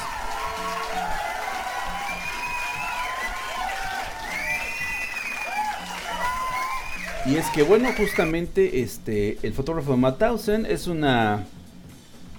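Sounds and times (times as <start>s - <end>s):
applause and cheering: 0.0s - 8.3s
speech: 7.2s - 11.6s.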